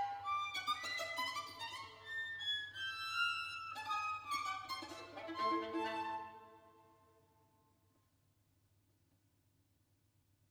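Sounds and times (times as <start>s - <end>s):
string quartet: 0.0s - 7.0s.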